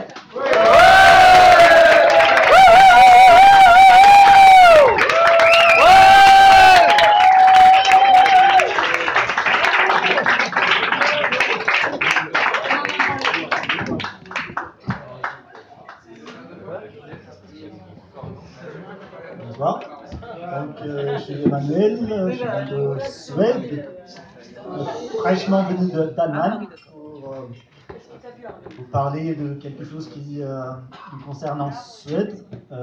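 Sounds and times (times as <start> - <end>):
crowd cheering with whoops and shouts: 0.2 - 15.4
speech: 25.5 - 26.9, 28.6 - 32.8.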